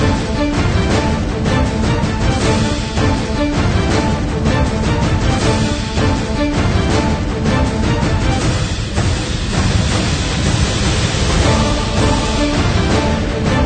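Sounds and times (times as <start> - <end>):
orchestra playing tense dramatic action trailer music: 0.0 - 9.1, 10.9 - 13.6
trumpet: 0.0 - 10.5, 11.1 - 13.6
tense dramatic action trailer drums: 0.0 - 13.6
choir singing: 11.2 - 13.6.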